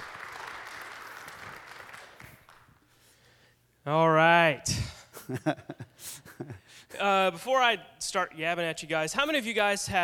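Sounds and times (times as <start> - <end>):
audience applause: 0.0 - 2.7
speech: 3.9 - 10.0.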